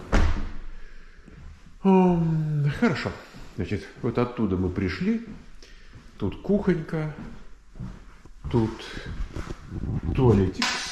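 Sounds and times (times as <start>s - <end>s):
small door thumping shut: 0.0s - 0.6s
speech: 1.8s - 5.5s, 6.2s - 10.8s.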